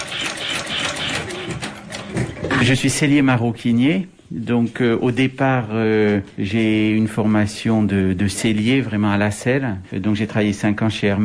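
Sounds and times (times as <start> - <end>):
sewing machine stitching a decorative seam on a leather belt: 0.0 - 2.8
speech: 2.6 - 11.2.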